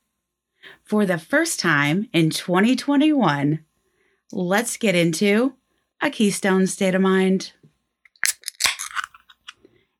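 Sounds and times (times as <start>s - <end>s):
speech: 0.7s - 3.7s, 4.3s - 7.6s
beer can cracked open: 8.1s - 9.6s.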